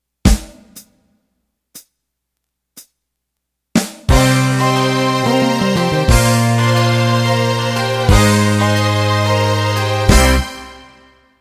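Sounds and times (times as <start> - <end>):
country shuffle music ending: 3.8 - 10.8.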